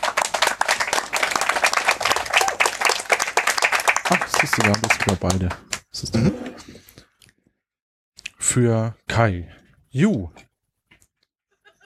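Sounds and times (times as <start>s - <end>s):
audience applause: 0.0s - 5.8s
speech: 4.4s - 6.9s, 8.6s - 10.5s.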